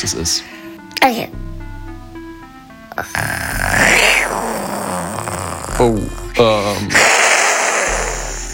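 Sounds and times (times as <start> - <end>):
speech: 0.0 - 1.5, 3.0 - 4.7, 5.8 - 7.2
person imitating tiger roar: 2.9 - 6.1, 6.9 - 8.4.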